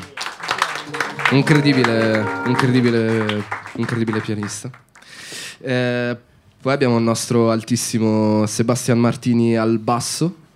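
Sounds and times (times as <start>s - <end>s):
audience clapping: 0.0s - 5.2s
speech: 1.3s - 4.9s, 5.6s - 10.4s.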